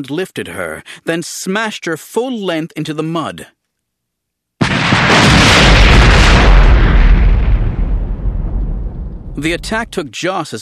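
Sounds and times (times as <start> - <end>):
speech: 0.0 - 3.6, 9.4 - 10.6
deafening explosion: 4.6 - 10.0.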